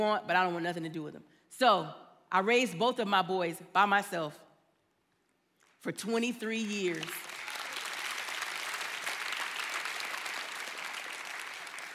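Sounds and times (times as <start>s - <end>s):
speech: 0.0s - 4.4s, 5.8s - 7.3s
audience applause: 7.0s - 11.9s.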